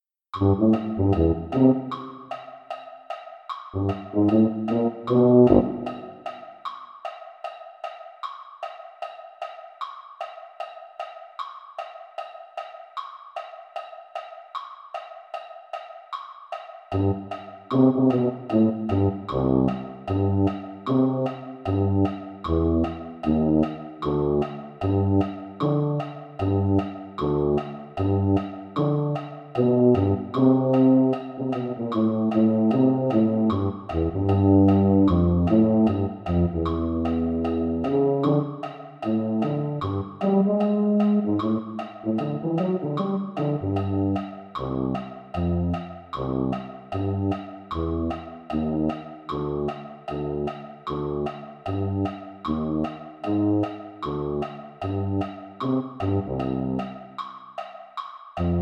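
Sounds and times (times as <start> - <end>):
tuba: 0.4 - 2.4, 3.8 - 6.3, 16.9 - 57.0, 58.4 - 58.6.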